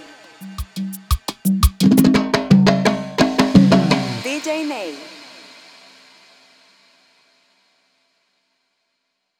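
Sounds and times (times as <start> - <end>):
cumbia percussion fill: 0.0 - 5.7.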